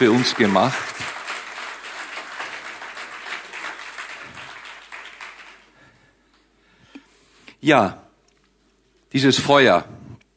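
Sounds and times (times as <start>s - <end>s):
speech: 0.0s - 1.0s, 7.6s - 8.0s, 9.1s - 10.1s
audience applause: 0.0s - 5.9s.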